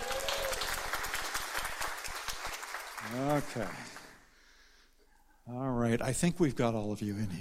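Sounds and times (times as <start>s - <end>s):
crowd applause: 0.0s - 4.2s
speech: 3.1s - 4.0s, 5.5s - 7.3s.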